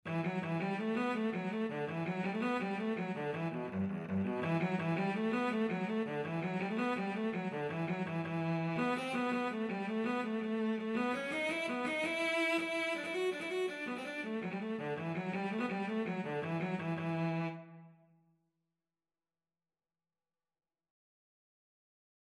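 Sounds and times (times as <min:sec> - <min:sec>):
cello: 0:00.1 - 0:18.0.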